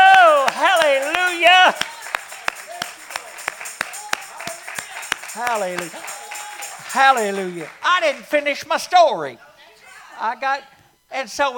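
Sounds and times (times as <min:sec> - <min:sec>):
audience hand clapping: 0:00.0 - 0:08.7
speech: 0:05.5 - 0:06.0, 0:06.9 - 0:09.5, 0:10.2 - 0:11.5.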